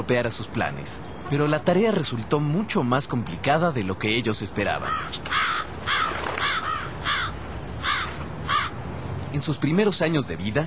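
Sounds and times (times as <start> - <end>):
speech: 0.0 - 5.9, 9.3 - 10.6
steady low hiss: 0.0 - 10.6
crows cawing: 4.8 - 8.8.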